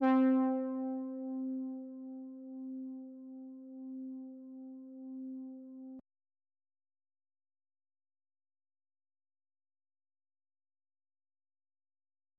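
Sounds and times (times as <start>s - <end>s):
lead melody: 0.0s - 6.0s.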